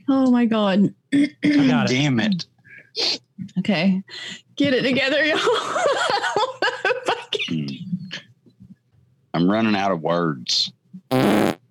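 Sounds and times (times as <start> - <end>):
speech: 0.1 - 7.6, 9.4 - 11.5
burp: 11.1 - 11.6.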